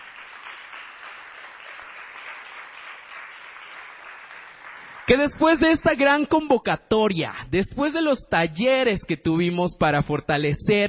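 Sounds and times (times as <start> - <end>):
audience applause: 0.0 - 5.4
speech: 5.1 - 10.8.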